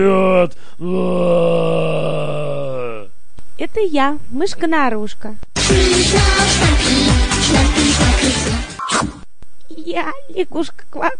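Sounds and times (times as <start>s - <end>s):
speech: 0.0s - 1.8s, 3.8s - 9.1s, 9.8s - 11.1s
person roaring at the top of their voice imitating an animal: 0.0s - 3.1s.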